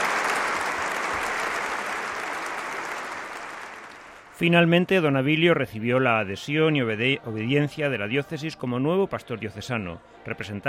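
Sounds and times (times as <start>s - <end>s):
warm applause from audience: 0.0s - 4.7s
speech: 4.4s - 10.6s.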